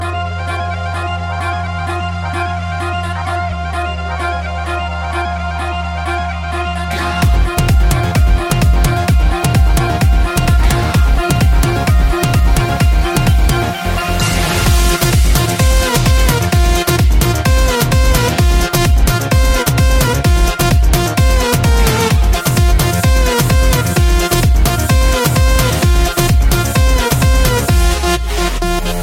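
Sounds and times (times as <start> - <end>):
remix music: 0.0 - 29.0.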